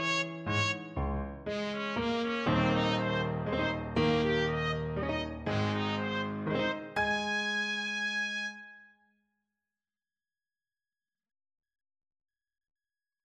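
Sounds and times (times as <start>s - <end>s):
slow waltz on trumpet: 0.0s - 8.8s.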